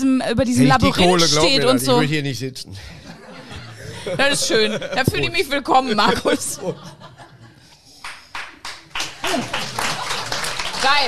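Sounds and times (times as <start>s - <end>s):
speech: 0.0s - 3.1s, 4.0s - 7.0s, 10.8s - 11.0s
laughter: 2.8s - 7.9s, 9.2s - 11.0s
audience clapping: 7.9s - 11.0s.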